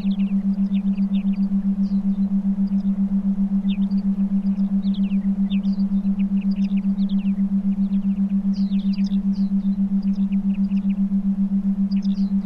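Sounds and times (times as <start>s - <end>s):
binaural theta meditation beats: 0.0s - 12.4s
forest ambience: 0.0s - 12.4s.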